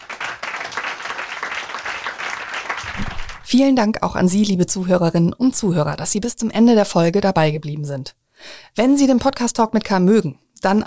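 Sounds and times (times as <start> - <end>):
audience applause: 0.0 - 3.5
speech: 3.5 - 10.8.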